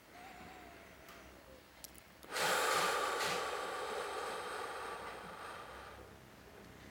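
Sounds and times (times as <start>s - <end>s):
person sighing: 2.3s - 6.0s.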